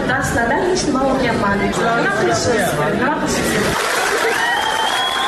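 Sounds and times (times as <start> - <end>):
speech: 0.1 - 3.9
video meeting participants applauding a student: 3.4 - 5.2.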